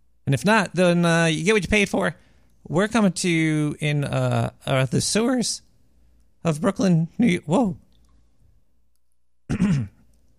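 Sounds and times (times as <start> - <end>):
speech: 0.3 - 5.7, 6.4 - 7.8, 9.6 - 9.9
throat clearing: 9.5 - 10.1.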